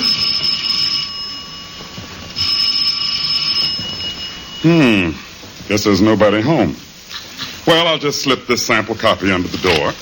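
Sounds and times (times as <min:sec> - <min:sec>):
doorbell ringing: 0:00.0 - 0:05.3
speech: 0:04.6 - 0:06.8, 0:07.7 - 0:09.9.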